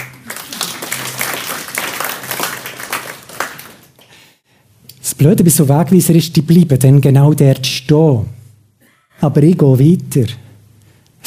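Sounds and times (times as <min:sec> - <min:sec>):
applause: 0:00.0 - 0:04.3
speech: 0:05.2 - 0:08.4, 0:09.2 - 0:10.4.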